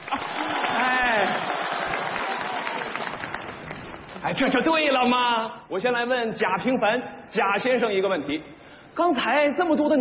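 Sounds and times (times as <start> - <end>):
audience applauding: 0.0 - 4.5
speech: 4.4 - 9.9.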